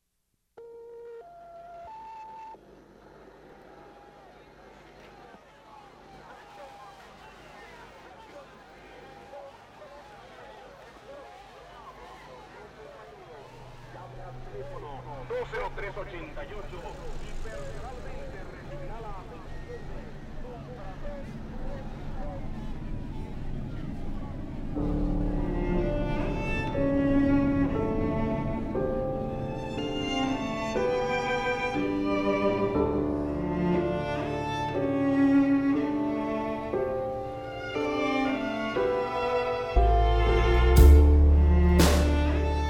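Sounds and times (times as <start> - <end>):
tango music: 24.8 - 42.6.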